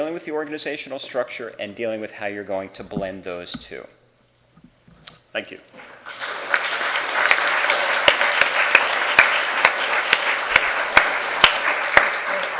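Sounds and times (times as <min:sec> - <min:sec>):
speech: 0:00.2 - 0:04.0, 0:05.3 - 0:06.2
audience applause: 0:06.1 - 0:12.5.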